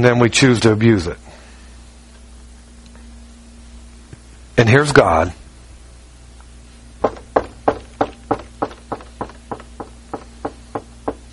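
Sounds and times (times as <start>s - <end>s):
speech: 0.0s - 1.3s, 4.6s - 5.4s
knocking on a door: 7.0s - 11.3s.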